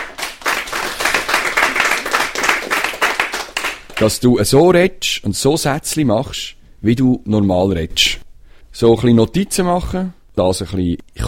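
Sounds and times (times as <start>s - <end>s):
applause: 0.0s - 4.1s
speech: 4.0s - 8.2s, 8.8s - 11.2s.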